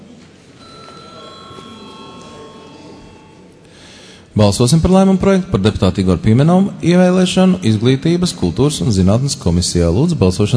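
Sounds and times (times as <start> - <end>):
parliament session bell in the Latvian Saeima: 0.6 - 3.6
speech: 4.4 - 10.5.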